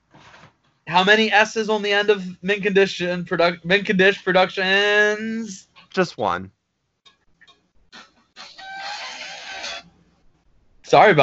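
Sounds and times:
speech: 0.9 - 6.6, 10.9 - 11.2
phone alert sounding like a chicken: 8.4 - 9.8.

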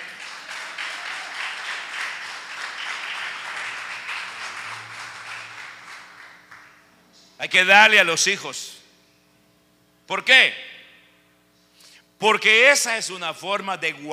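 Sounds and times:
audience applause: 0.0 - 6.8
speech: 7.4 - 8.7, 10.1 - 10.7, 12.2 - 14.1.

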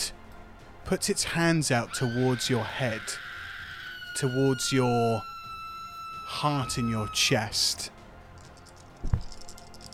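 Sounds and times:
speech: 0.9 - 3.2, 4.2 - 5.3, 6.3 - 8.0
handful of dice rattling in a hand: 8.4 - 9.9.

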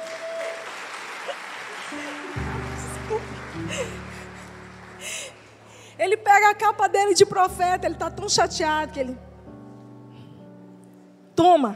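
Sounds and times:
audience applause: 0.0 - 5.7
speech: 1.3 - 4.2, 6.0 - 9.3, 11.4 - 11.7.

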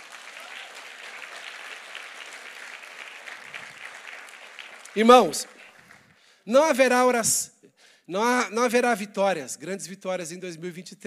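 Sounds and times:
audience giving a round of applause: 0.0 - 6.2
speech: 5.0 - 5.6, 6.4 - 7.5, 8.1 - 11.0.

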